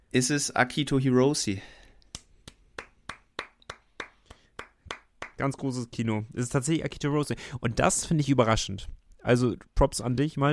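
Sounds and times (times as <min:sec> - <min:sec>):
speech: 0:00.1 - 0:01.8, 0:05.4 - 0:10.5
hands clapping: 0:02.1 - 0:05.6.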